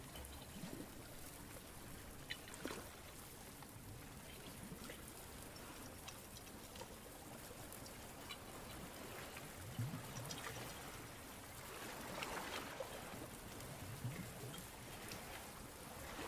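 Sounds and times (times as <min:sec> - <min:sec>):
rushing water at the beach: 0:00.0 - 0:16.2
wind at the beach: 0:00.0 - 0:16.2.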